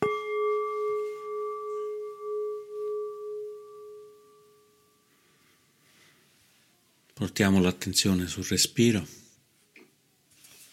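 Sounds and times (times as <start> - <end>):
meditation bell ringing: 0.0 - 5.2
speech: 7.2 - 9.2.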